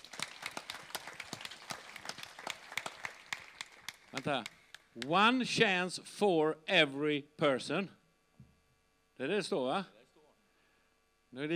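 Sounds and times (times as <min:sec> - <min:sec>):
applause: 0:00.0 - 0:05.1
speech: 0:04.2 - 0:08.0, 0:09.2 - 0:10.0, 0:11.3 - 0:11.5.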